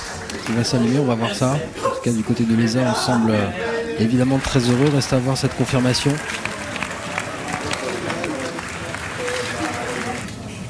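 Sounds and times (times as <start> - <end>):
applause in control room: 0.0 - 1.2, 4.2 - 10.6
speech: 0.5 - 6.5.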